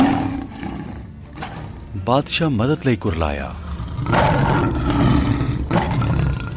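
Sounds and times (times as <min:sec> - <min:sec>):
lion roaring sound effect: 0:00.0 - 0:01.8, 0:03.7 - 0:06.5
speech: 0:02.0 - 0:04.8.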